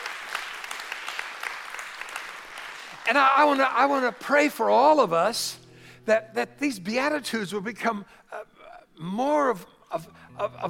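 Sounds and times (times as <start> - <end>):
audience clapping hands: 0.0 - 5.0
speech: 3.1 - 8.2, 9.0 - 10.6.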